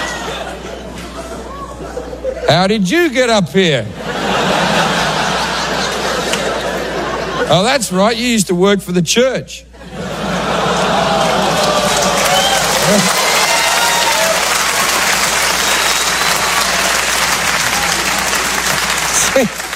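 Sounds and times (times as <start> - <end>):
laughter: 0.0 - 2.8, 3.9 - 7.9, 9.8 - 13.5
speech: 2.5 - 4.0, 7.5 - 9.7
audience groaning: 10.0 - 19.7.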